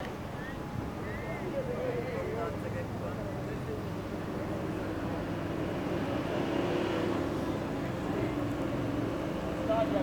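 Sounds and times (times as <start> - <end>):
quiet street ambience by day: 0.0 - 10.0.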